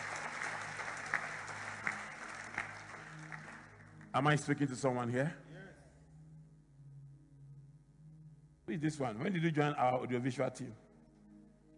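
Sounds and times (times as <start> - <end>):
audience clapping: 0.0 - 4.5
speech: 4.2 - 5.5, 8.8 - 10.8.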